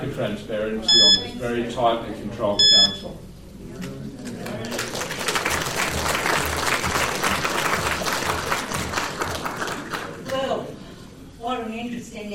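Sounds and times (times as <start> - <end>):
speech: 0.1 - 4.0, 11.6 - 12.3
audience applause: 4.4 - 10.4.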